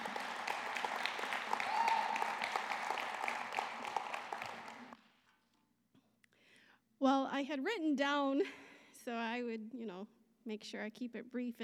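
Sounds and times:
audience applause welcoming a speaker: 0.0 - 5.0
speech: 7.0 - 11.6.

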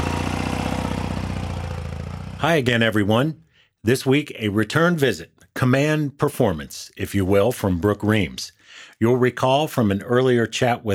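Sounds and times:
motorcycle engine starting and idling: 0.0 - 2.4
speech: 2.4 - 10.9.

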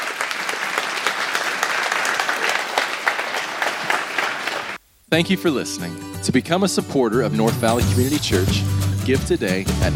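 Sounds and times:
audience applause: 0.0 - 4.8
speech: 5.1 - 9.9.

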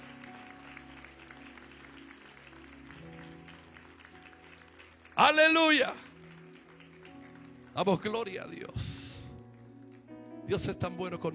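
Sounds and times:
audience applause: 0.0 - 8.8
speech: 5.2 - 6.0, 7.8 - 9.0, 10.5 - 11.3.

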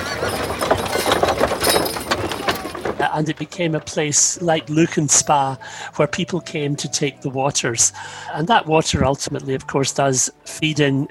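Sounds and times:
clip-clopping hooves of horse-drawn carriages: 0.0 - 5.5
rumbling carriage wheel and street noise: 0.0 - 8.3
speech: 3.1 - 11.0.

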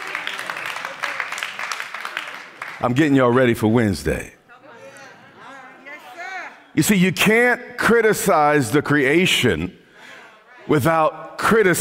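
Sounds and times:
a few audience claps: 0.0 - 3.6
speech: 2.8 - 4.4, 6.8 - 9.8, 10.7 - 11.7.

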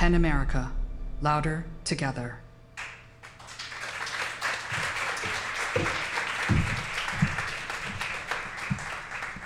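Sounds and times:
speech: 0.1 - 2.4
crowd applause: 2.8 - 9.4
sharp individual claps: 2.8 - 9.4.

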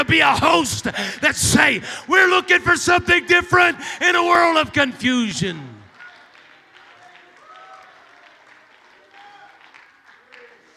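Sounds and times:
speech: 0.0 - 5.7
audience clapping: 4.3 - 10.7.

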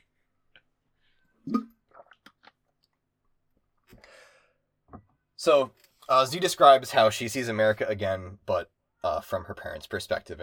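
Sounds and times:
person sipping water: 1.5 - 2.6
breathy exhale: 4.0 - 4.6
speech: 5.4 - 10.4.

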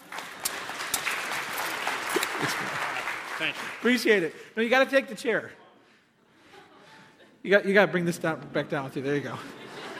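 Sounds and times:
audience applause: 0.0 - 4.5
laughter: 2.0 - 3.2, 6.2 - 7.7, 9.1 - 9.9
speech: 2.4 - 5.6, 7.4 - 9.6.

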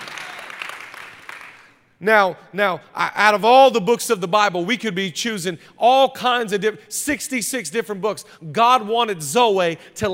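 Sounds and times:
audience clapping: 0.0 - 1.8
speech: 2.0 - 10.1.

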